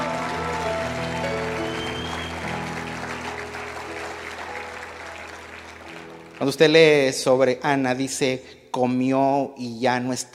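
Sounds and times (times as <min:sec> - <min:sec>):
audience applause: 0:00.0 - 0:06.9
speech: 0:06.4 - 0:10.3.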